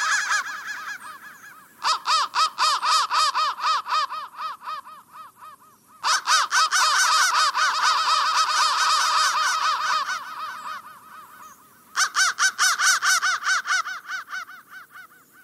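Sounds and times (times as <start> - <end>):
crow chorus cawing: 0.0 - 15.4.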